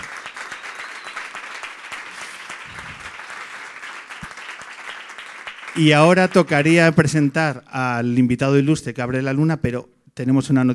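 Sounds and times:
audience clapping: 0:00.0 - 0:07.4
speech: 0:05.8 - 0:10.7.

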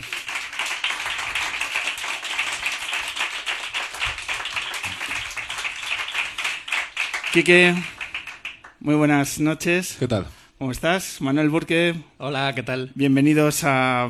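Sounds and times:
audience applause: 0:00.0 - 0:08.8
speech: 0:07.3 - 0:08.0, 0:08.8 - 0:14.0.

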